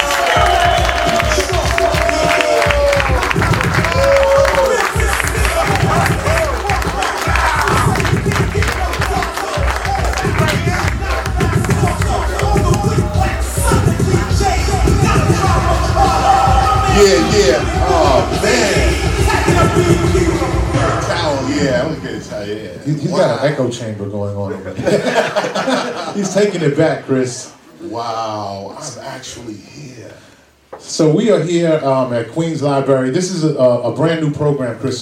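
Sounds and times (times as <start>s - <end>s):
audience applause and cheering: 0.0s - 22.8s
speech: 23.6s - 30.2s, 30.9s - 35.0s
laughter: 24.6s - 26.8s.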